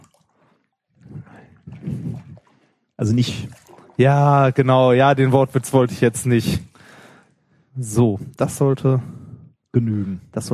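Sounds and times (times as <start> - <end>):
seawater being poured into a basin: 1.4 - 5.6
speech: 3.0 - 6.7, 7.8 - 10.5.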